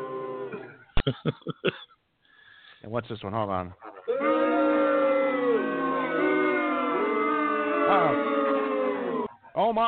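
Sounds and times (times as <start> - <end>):
speech: 1.0 - 1.8, 2.8 - 4.4, 9.6 - 9.8
restless crowd shouting and whooping: 4.1 - 9.3.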